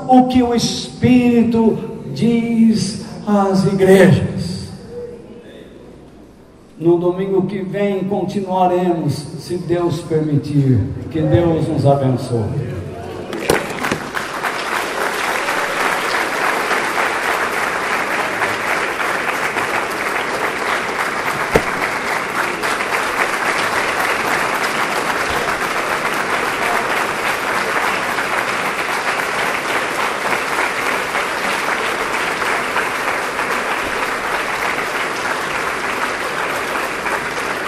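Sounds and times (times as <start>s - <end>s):
speech: 0.1s - 4.3s, 6.8s - 12.8s
audience applause: 13.3s - 37.6s.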